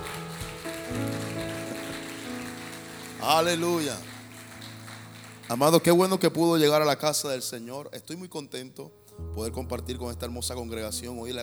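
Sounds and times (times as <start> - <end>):
audience applauding: 0.0 - 6.4
speech: 3.2 - 4.1, 5.5 - 11.4.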